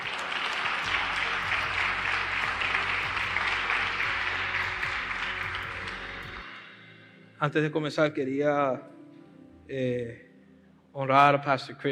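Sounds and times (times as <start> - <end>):
audience applause: 0.0 - 6.4
speech: 7.4 - 9.0, 9.7 - 10.3, 10.9 - 11.9.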